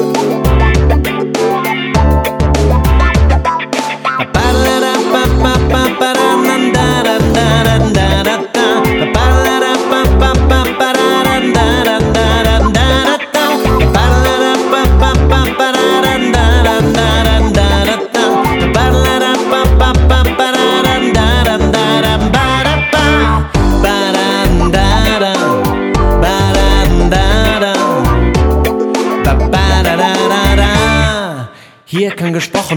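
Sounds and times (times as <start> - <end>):
instrumental music without lyrics: 0.0 - 31.2.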